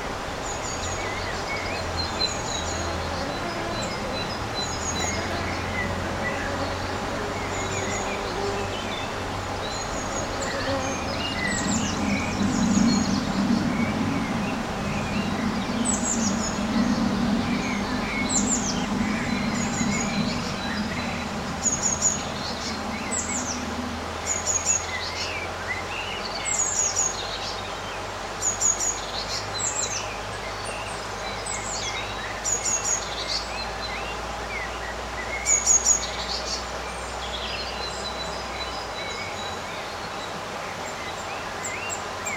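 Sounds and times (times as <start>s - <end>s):
steady background hum: 0.0s - 25.5s
faint low drone: 0.0s - 25.9s
birds singing in a summer garden: 0.0s - 42.3s
low rumble: 3.9s - 25.1s.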